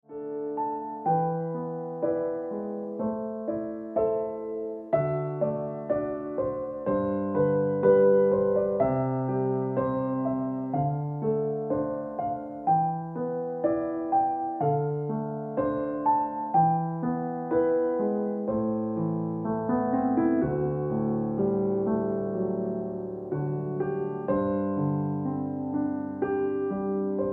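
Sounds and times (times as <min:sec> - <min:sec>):
piano ringtone music: 0:00.1 - 0:27.3.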